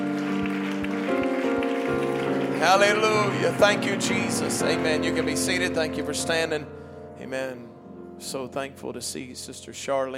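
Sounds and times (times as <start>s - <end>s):
audience clapping hands: 0.0s - 5.3s
speech: 2.6s - 10.1s.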